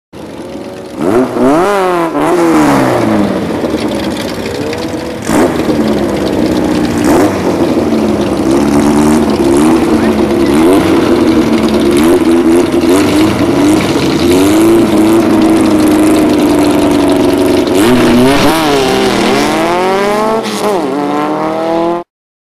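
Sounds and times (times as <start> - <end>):
VW Kupla car engine: 0.2 - 22.1.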